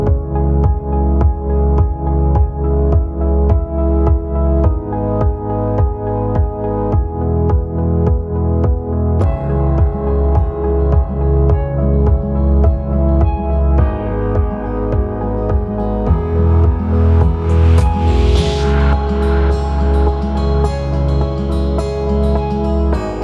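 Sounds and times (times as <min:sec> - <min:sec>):
urban quarter-time beat: 0:00.2 - 0:23.1.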